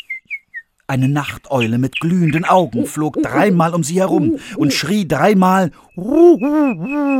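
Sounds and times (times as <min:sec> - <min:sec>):
speech: 0:00.9 - 0:07.1
nightingale singing: 0:01.5 - 0:07.1.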